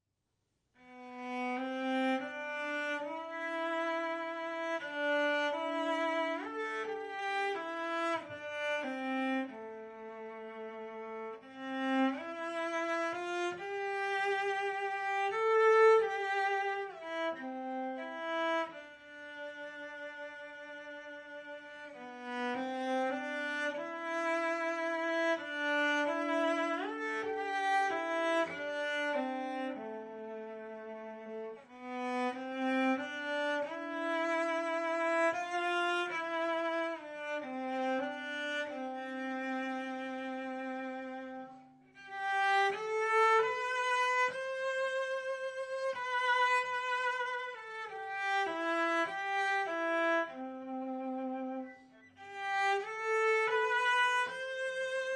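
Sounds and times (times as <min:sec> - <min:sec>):
cello: 0:00.8 - 0:55.1.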